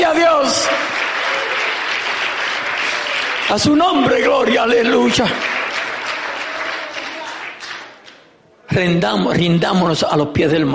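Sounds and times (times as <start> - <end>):
audience applause: 0.0 - 8.2
speech: 3.5 - 5.5, 8.8 - 10.7.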